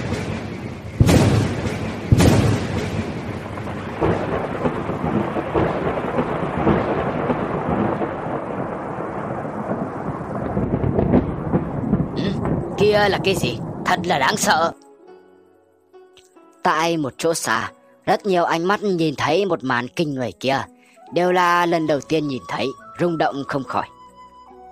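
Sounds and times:
thunder and lightning strikes sound effect: 0.0s - 14.6s
speech: 12.9s - 14.8s, 16.8s - 24.0s.

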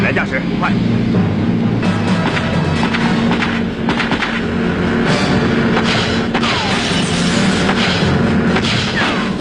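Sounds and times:
speech: 0.1s - 1.7s
gunfire in a sea gunfight: 2.2s - 4.7s, 5.7s - 9.3s.

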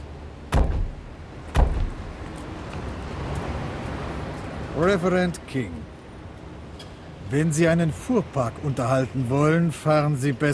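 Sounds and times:
car doors clunking at a traffic stop: 0.5s - 2.2s
speech: 4.8s - 5.9s, 7.3s - 10.5s.

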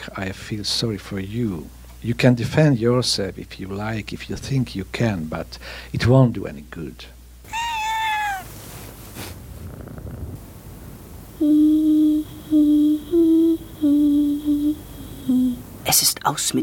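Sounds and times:
speech: 0.1s - 7.6s, 16.3s - 16.6s
cat meowing: 7.5s - 8.6s
cat purring: 7.5s - 15.8s.

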